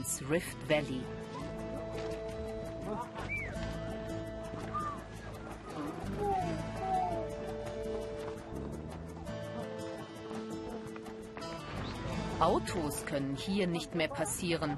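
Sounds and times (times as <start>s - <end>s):
speech: 0.0s - 1.4s, 2.9s - 3.4s, 12.4s - 14.7s
hooves clattering: 0.0s - 14.7s
camels grumbling and groaning on a mountain descent: 1.2s - 12.4s.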